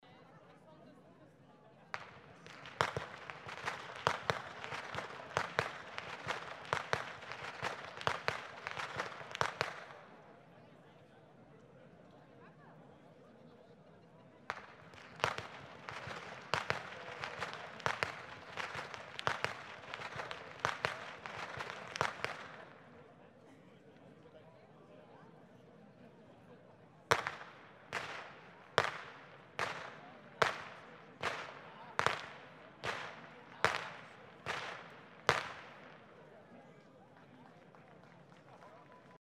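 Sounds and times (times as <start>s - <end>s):
youth whip cracking: 2.0s - 10.0s, 14.5s - 22.6s, 27.1s - 36.1s.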